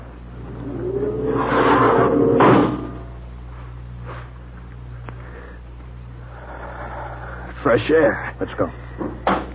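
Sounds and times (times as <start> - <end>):
spaceship outer airlock opening, radio drama effect: 0.4 - 3.1
speech: 7.7 - 9.3.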